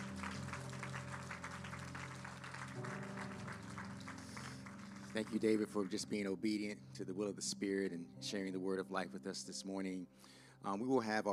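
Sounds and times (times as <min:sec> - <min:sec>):
crowd clapping: 0:00.0 - 0:06.5
speech: 0:05.2 - 0:11.3.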